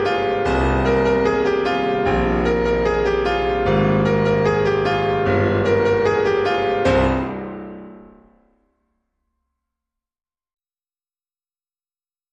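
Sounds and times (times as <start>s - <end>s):
solo piano piece: 0.0s - 8.5s.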